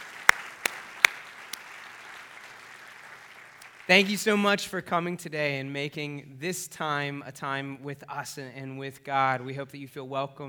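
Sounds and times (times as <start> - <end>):
round of applause: 0.0 - 4.3
speech: 3.9 - 10.4.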